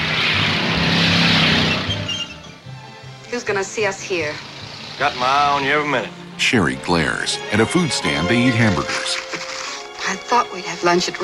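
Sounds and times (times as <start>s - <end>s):
hot rod speeding across finish line: 0.0s - 8.3s
speech: 3.4s - 9.3s, 10.1s - 11.2s.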